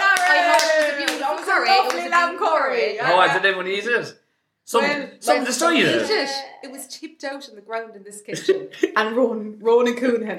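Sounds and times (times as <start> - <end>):
crowd round of applause: 0.0 - 2.4
speech: 1.6 - 10.3.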